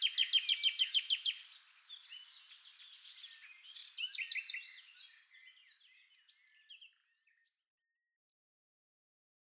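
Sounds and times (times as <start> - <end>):
Common nightingale song: 0.0 - 7.5.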